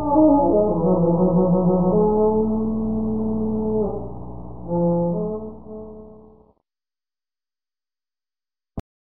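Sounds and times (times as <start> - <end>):
blowing: 0.0 - 6.5.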